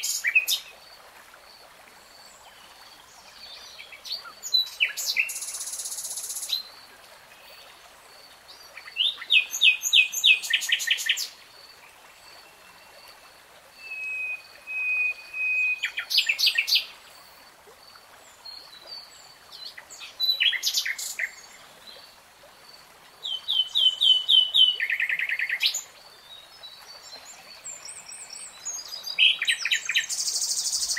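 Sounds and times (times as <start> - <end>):
nightingale song: 2.4 - 6.7, 8.5 - 13.2, 13.8 - 17.0, 18.4 - 22.0, 23.2 - 30.9.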